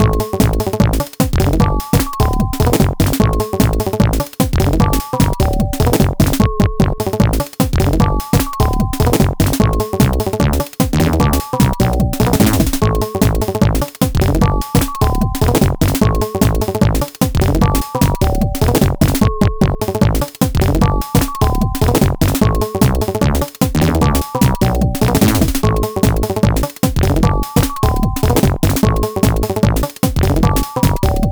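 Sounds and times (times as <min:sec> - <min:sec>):
bells music: 0:00.0 - 0:31.3.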